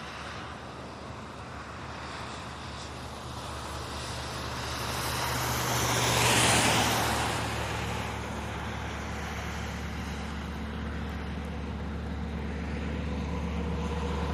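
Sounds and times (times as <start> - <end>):
rain: 0.0 - 10.5
wet traffic driving by in rain: 0.0 - 14.3.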